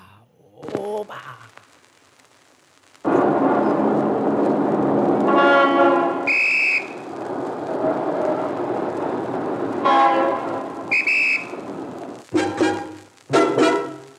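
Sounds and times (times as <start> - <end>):
speech: 0.9 - 1.5
moving train rumbling: 3.1 - 13.8
train whistle blowing shrill tonal blasts: 5.3 - 7.0, 9.8 - 11.6.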